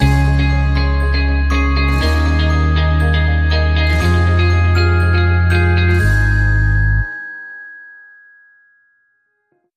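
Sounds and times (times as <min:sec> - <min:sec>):
music stinger without drums: 0:00.0 - 0:07.1.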